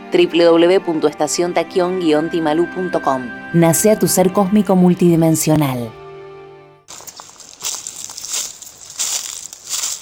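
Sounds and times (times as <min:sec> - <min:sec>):
speech: 0:00.1 - 0:06.0
dry autumn leaves crunching: 0:06.9 - 0:09.9.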